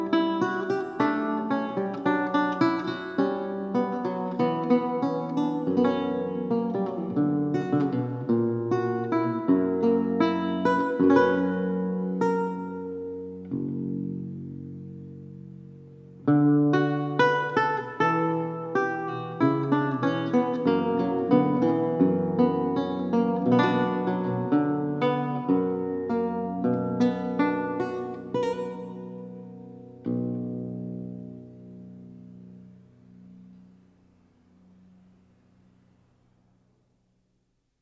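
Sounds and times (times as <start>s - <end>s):
15-course archlute prelude: 0.0s - 33.8s.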